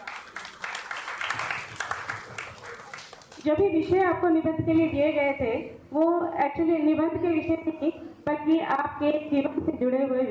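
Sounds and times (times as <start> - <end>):
loud applause from the audience: 0.0 - 3.4
speech: 3.4 - 10.2.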